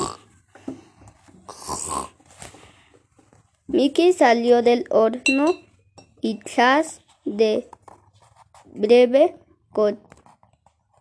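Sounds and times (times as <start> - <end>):
man snoring: 0.0 - 0.3, 1.5 - 2.2
speech: 3.8 - 7.8, 8.8 - 10.1.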